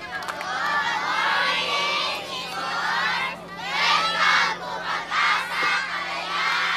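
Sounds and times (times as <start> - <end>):
schoolchildren on a quay shouting and cheering to greet a cruise ship: 0.0 - 6.7.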